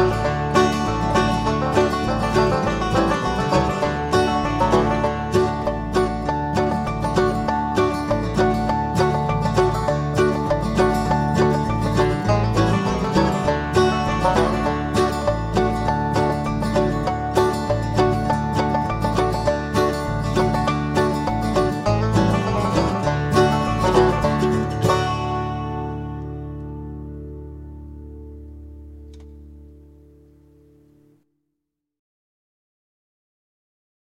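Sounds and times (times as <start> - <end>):
mandolin: 0.0 - 31.1.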